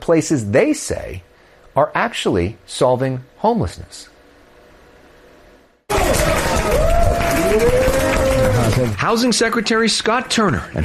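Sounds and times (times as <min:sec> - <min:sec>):
speech: 0:00.0 - 0:04.1, 0:07.5 - 0:07.8, 0:08.8 - 0:10.8
formerly homeless residents at L.A.'s Dream Center cheering: 0:05.9 - 0:09.0
clapping: 0:05.9 - 0:09.1.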